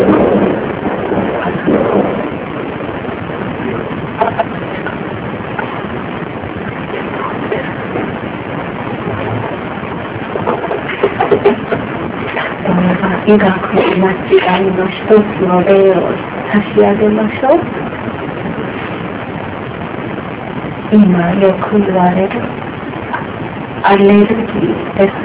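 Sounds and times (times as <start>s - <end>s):
fireworks bursting: 0.0s - 25.2s
speech: 13.3s - 17.8s, 20.9s - 22.6s, 23.8s - 25.2s.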